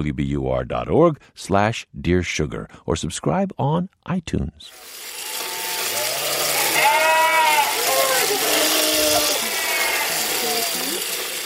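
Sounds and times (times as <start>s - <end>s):
speech: 0.0s - 5.2s
sheep bleating during sheep shearing: 5.2s - 11.2s.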